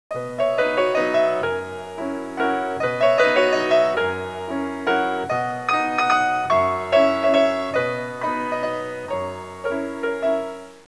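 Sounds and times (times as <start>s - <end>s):
classical music ringtones: 0.2s - 10.8s.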